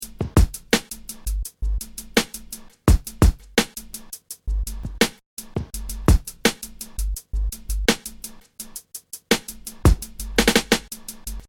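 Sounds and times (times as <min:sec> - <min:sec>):
drums: 0:00.0 - 0:11.4.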